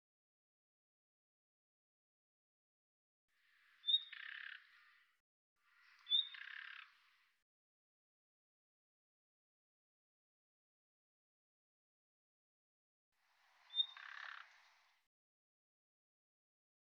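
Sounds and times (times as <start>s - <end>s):
bird calls with high sharp notes and buzzy lower tail: 3.4s - 7.3s, 13.5s - 15.0s.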